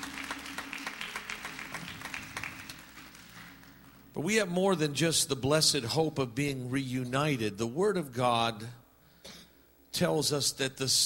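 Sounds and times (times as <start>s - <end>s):
audience applause: 0.0s - 3.9s
speech: 4.2s - 8.8s, 10.0s - 11.0s.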